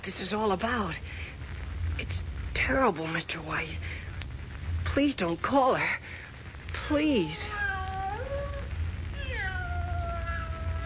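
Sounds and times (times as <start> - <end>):
speech: 0.0 - 4.0, 5.0 - 6.2, 6.9 - 7.6
cat meowing plaintively: 7.2 - 10.8.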